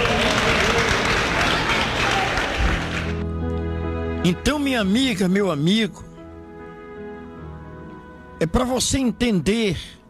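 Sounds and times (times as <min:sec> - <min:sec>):
crowd applauding: 0:00.0 - 0:03.6
speech: 0:04.2 - 0:06.1, 0:08.4 - 0:10.0.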